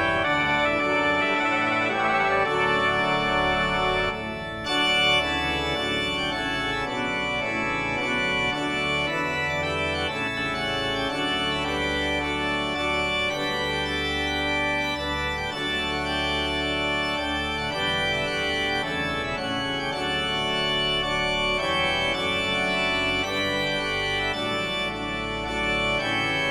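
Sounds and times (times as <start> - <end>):
brass playing a voluntary: 0.0 - 7.0
organ playing a voluntary: 0.0 - 26.4.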